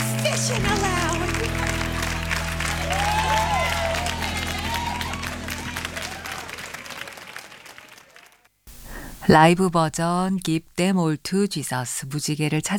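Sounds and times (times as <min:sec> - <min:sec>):
live audience applause: 0:00.0 - 0:08.5
speech: 0:00.5 - 0:01.1, 0:09.3 - 0:12.7
live audience laughter: 0:00.9 - 0:07.0.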